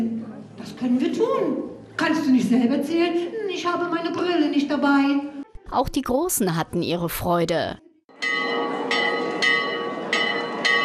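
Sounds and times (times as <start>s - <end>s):
speech: 0.7s - 8.4s
large castle tower bell ringing: 8.1s - 10.8s.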